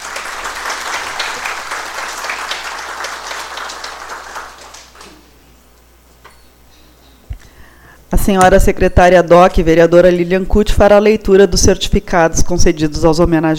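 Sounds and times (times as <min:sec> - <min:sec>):
audience applause: 0:00.0 - 0:05.1
speech: 0:08.2 - 0:13.5.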